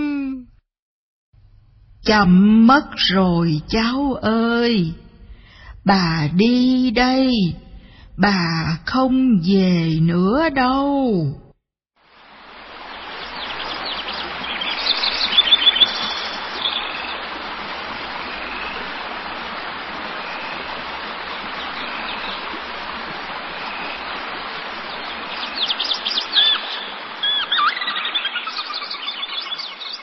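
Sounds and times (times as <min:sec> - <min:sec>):
speech: 0:02.1 - 0:05.0, 0:05.8 - 0:07.6, 0:08.2 - 0:11.4
flowing stream water rushing: 0:12.0 - 0:30.0
birds chirping: 0:12.8 - 0:30.0.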